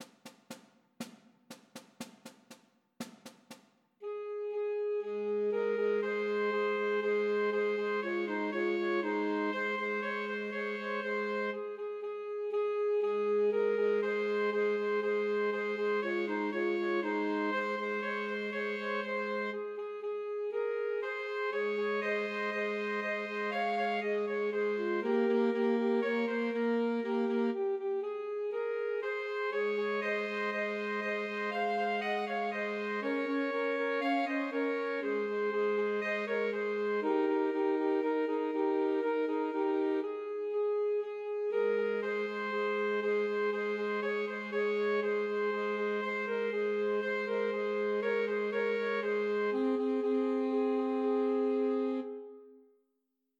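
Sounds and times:
three alto saxophones playing Christmas trios: 0:04.0 - 0:52.5.

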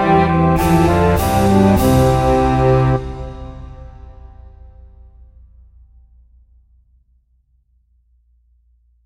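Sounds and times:
cello melody: 0:00.0 - 0:04.2.

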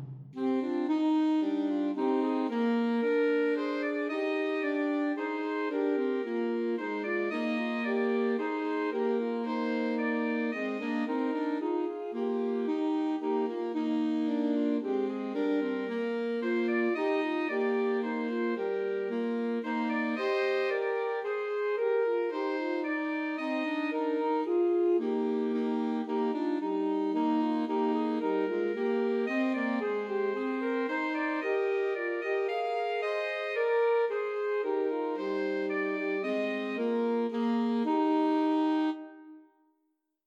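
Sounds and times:
alto saxophone trio: 0:00.4 - 0:39.5.

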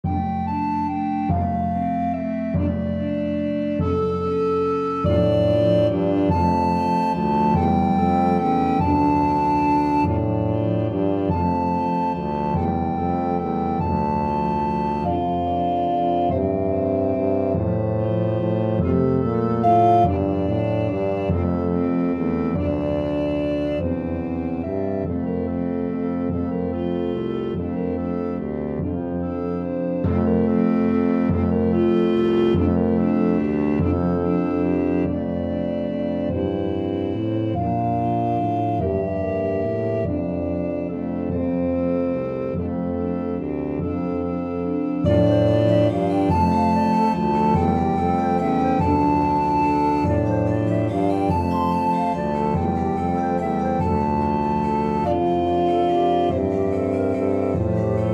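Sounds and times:
tuba melody: 0:00.0 - 0:58.1.

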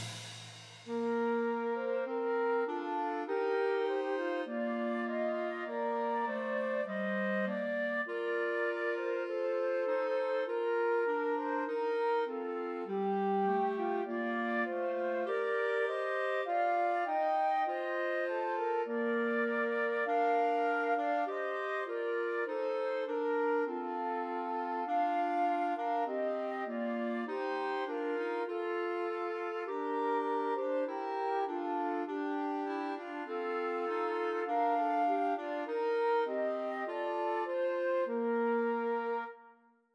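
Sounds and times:
Christmas trio for two flutes and clarinet: 0:00.1 - 0:39.6.

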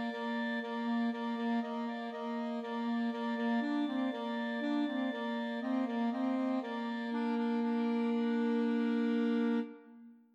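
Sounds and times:
trio for two clarinets and alto saxophone: 0:00.0 - 0:10.0.

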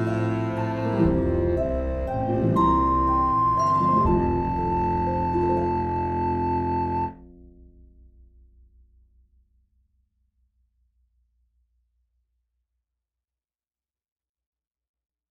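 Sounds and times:
melodic music track: 0:00.0 - 0:07.3.

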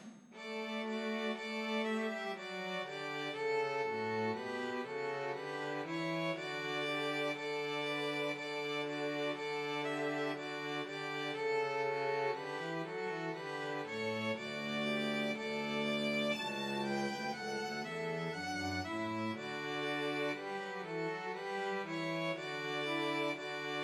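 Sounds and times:
Christmas trio for two violins and cello: 0:00.3 - 0:23.8.

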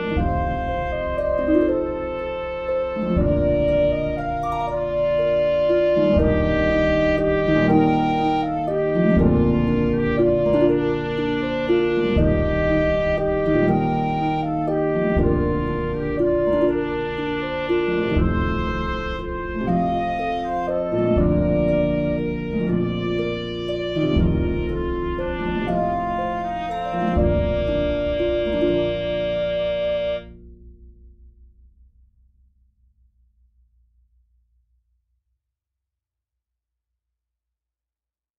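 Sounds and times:
trumpet melody: 0:00.0 - 0:30.4.

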